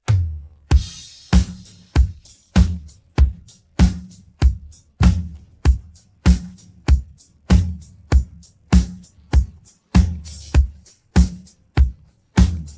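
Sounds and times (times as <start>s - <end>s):
drum pattern: 0.0s - 12.7s.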